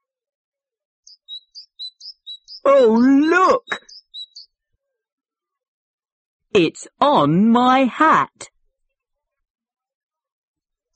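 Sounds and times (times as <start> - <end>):
small bird chirping: 1.0 - 4.8
speech: 2.6 - 3.8, 6.6 - 8.5.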